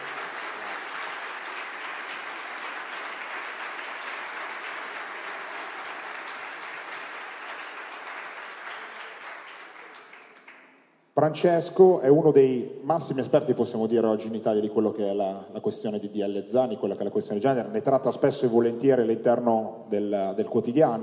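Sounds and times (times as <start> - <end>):
audience applause: 0.0 - 10.8
speech: 11.2 - 21.0.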